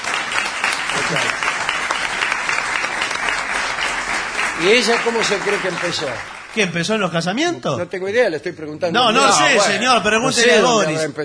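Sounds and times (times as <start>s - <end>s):
audience applauding: 0.0s - 7.3s
speech: 4.6s - 11.2s.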